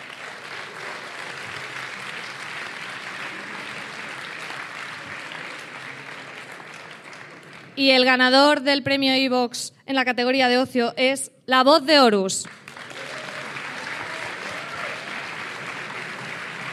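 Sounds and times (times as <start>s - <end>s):
crowd applause: 0.0s - 7.8s, 12.5s - 16.7s
speech: 7.8s - 12.6s.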